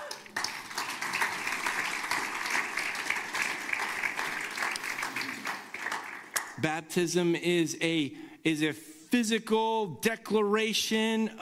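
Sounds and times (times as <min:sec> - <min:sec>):
audience applause: 0:00.0 - 0:06.6
speech: 0:06.6 - 0:11.4.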